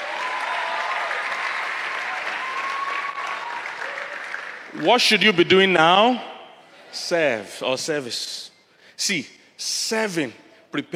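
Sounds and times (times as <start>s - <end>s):
audience clapping: 0.0s - 5.3s
speech: 4.7s - 6.3s, 6.9s - 10.9s.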